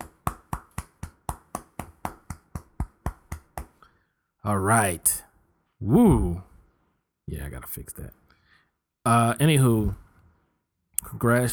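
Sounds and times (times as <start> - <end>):
person clapping hands: 0.0 - 3.8
speech: 4.4 - 6.5, 7.3 - 8.2, 9.0 - 10.0, 11.0 - 11.5.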